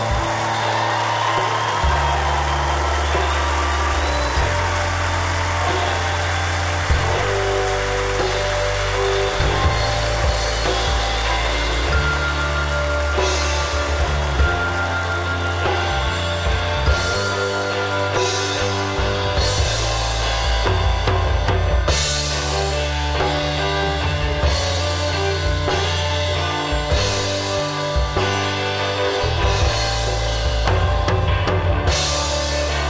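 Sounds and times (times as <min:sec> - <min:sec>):
crowd cheering and applauding: 0:00.0 - 0:32.8.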